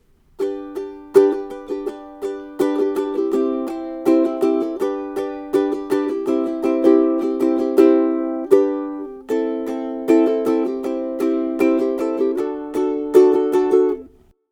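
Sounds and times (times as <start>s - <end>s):
ukulele strumming: 0.0s - 14.3s.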